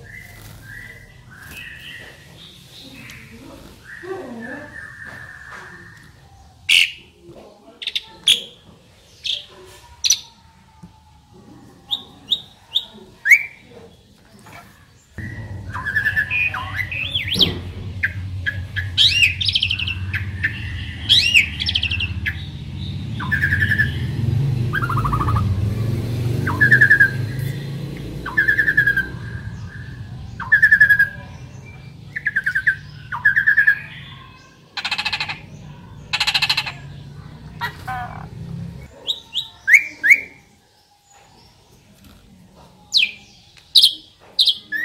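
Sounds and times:
Asian pied starling singing: 0.0s - 42.2s, 42.9s - 44.8s
steady low hum: 15.2s - 33.3s.

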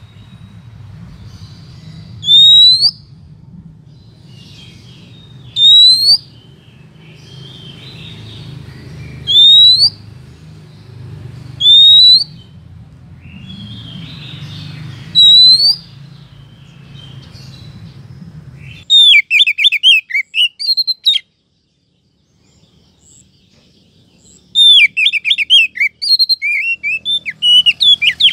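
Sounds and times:
Oriental magpie-robin rising whistle: 2.1s - 3.1s, 5.4s - 6.4s, 9.2s - 10.0s, 11.6s - 12.5s, 15.1s - 15.9s, 18.7s - 21.3s, 24.5s - 28.3s.

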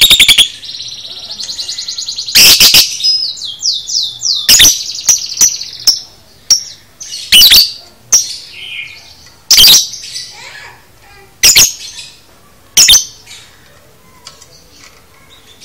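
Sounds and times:
lovebird song: 0.0s - 10.5s, 11.4s - 12.2s, 12.8s - 13.5s.

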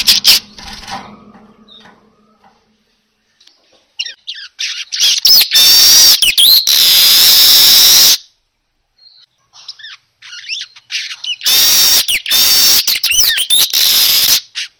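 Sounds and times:
manyar weaver lure call song: 0.0s - 0.8s, 3.4s - 8.3s, 9.0s - 14.7s.

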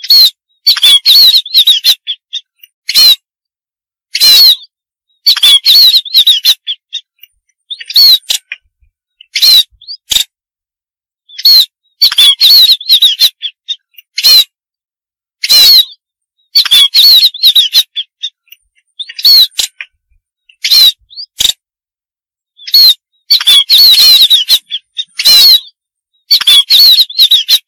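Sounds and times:
munia harsh buzzy calls and thin wavering whistles: 0.0s - 3.3s, 4.1s - 8.6s, 9.2s - 10.1s, 11.3s - 14.6s, 15.4s - 21.5s, 22.6s - 27.6s.

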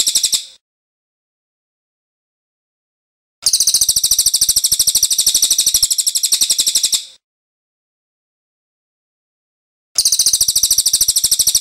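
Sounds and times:
rattling trill: 0.0s - 0.6s, 3.4s - 7.1s, 10.0s - 11.5s.

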